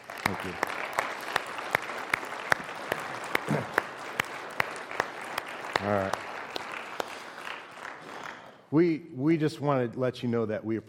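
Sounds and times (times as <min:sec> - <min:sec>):
audience applause: 0:00.0 - 0:08.7
speech: 0:00.3 - 0:00.8, 0:05.8 - 0:06.2, 0:08.7 - 0:10.8.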